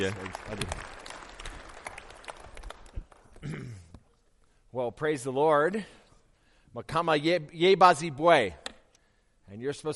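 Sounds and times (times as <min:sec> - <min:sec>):
speech: 0:00.0 - 0:00.9, 0:04.7 - 0:06.0, 0:06.8 - 0:08.6, 0:09.5 - 0:09.9
audience clapping in welcome: 0:00.0 - 0:03.5.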